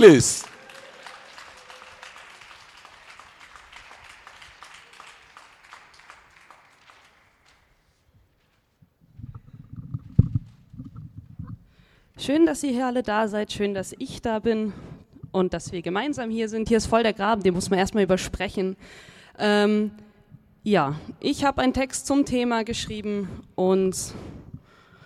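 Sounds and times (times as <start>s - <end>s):
speech: 0.0s - 0.5s, 12.2s - 20.0s, 20.6s - 24.4s
crowd applauding: 0.0s - 7.8s.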